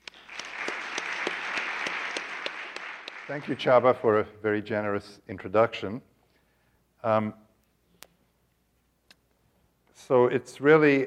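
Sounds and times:
audience applause welcoming a professor to a physics lecture: 0:00.0 - 0:04.0
speech: 0:03.3 - 0:06.1, 0:07.0 - 0:07.4, 0:10.1 - 0:11.0.

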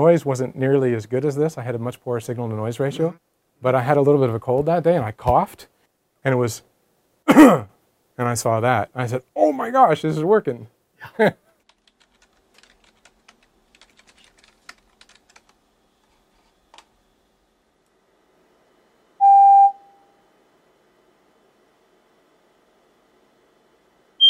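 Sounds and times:
speech: 0:00.0 - 0:06.7, 0:07.3 - 0:11.4
faint keyboard-like clicks: 0:11.6 - 0:16.9
computer-played test tone: 0:19.2 - 0:20.2.

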